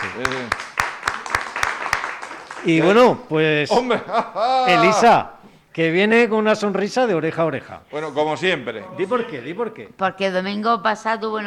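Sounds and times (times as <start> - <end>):
audience applause: 0.0 - 3.3
rhythmic clapping: 0.0 - 3.3
speech: 0.2 - 0.7, 2.6 - 11.4
laughter: 2.7 - 5.2
vocal cry: 4.3 - 5.2.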